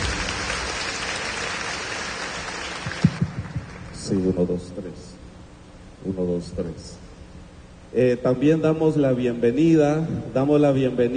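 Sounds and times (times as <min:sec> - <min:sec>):
audience applauding: 0:00.0 - 0:04.1
speech: 0:04.1 - 0:05.1, 0:06.0 - 0:07.0, 0:07.9 - 0:11.1.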